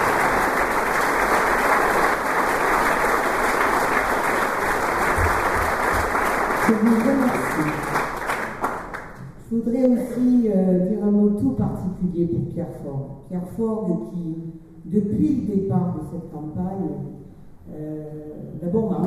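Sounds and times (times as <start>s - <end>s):
audience applauding loudly: 0.0s - 9.2s
speech: 6.7s - 8.0s, 9.5s - 17.1s, 17.7s - 19.0s.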